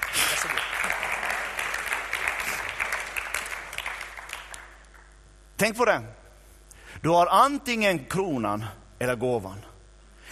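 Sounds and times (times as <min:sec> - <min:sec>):
audience applause: 0:00.0 - 0:05.1
speech: 0:05.6 - 0:06.2, 0:07.0 - 0:09.7.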